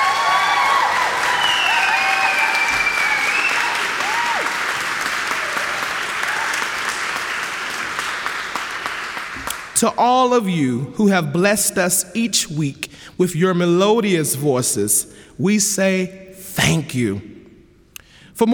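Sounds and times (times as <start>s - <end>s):
audience applause for graduating choir: 0.0s - 9.7s
speech: 9.8s - 17.3s.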